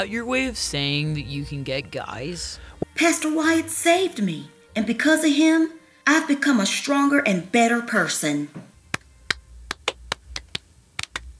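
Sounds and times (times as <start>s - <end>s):
speech: 0.0s - 8.7s
applause: 8.9s - 11.3s.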